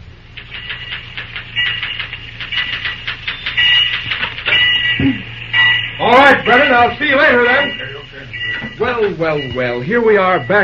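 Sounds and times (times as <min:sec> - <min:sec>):
typewriter typing: 0:00.3 - 0:05.0
speech: 0:06.0 - 0:07.9, 0:08.8 - 0:10.6.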